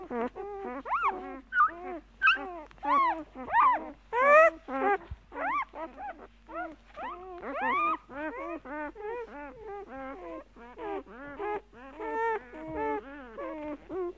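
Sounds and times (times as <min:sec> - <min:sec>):
dog whining and yelping: 0:00.0 - 0:14.1.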